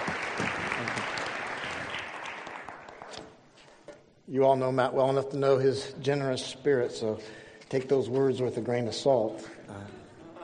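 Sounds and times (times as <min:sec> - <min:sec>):
audience applause welcoming a speaker at a morning gathering: 0:00.0 - 0:03.2
speech: 0:04.3 - 0:10.0.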